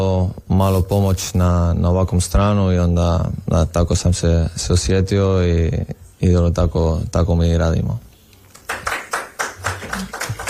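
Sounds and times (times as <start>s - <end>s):
speech: 0.3s - 8.1s
audience clapping: 8.5s - 10.4s.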